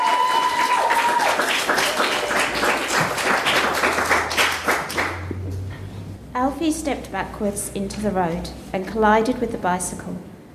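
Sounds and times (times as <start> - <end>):
audience applause welcoming a performer on stage: 0.0 - 5.6
speech: 6.6 - 10.4.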